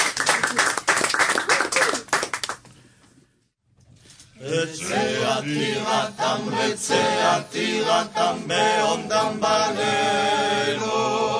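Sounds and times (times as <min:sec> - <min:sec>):
audience applause: 0:00.0 - 0:02.6
speech: 0:05.4 - 0:11.3.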